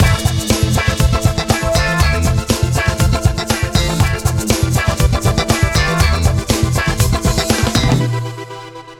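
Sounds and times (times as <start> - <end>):
shaker: 0.0 - 8.0.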